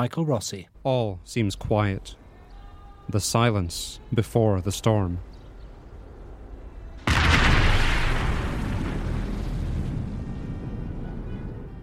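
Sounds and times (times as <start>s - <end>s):
speech: 0.0s - 2.2s, 3.1s - 5.3s
rocket fire blast: 7.0s - 11.7s.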